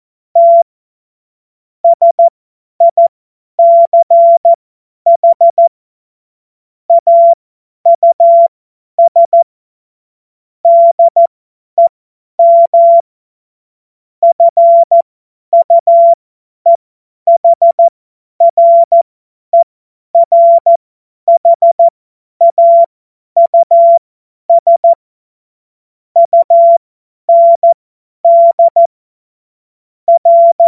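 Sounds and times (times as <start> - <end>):
CW Morse code beeps: 0.4 - 0.6, 1.8 - 5.7, 6.9 - 9.4, 10.7 - 11.3, 12.4 - 13.0, 14.2 - 15.0, 15.6 - 19.0, 20.2 - 25.0, 26.2 - 28.9, 30.1 - 30.6.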